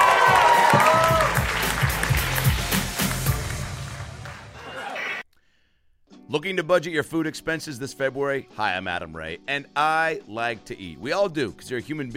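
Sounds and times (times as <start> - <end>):
comedy club audience cheering and applauding: 0.0 - 5.2
speech: 6.3 - 12.1.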